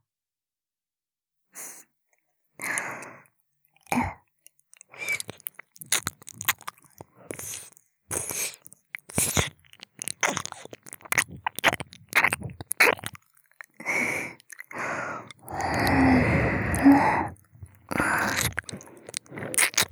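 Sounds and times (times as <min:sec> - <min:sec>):
ASMR ear licking sounds: 0:04.7 - 0:19.9.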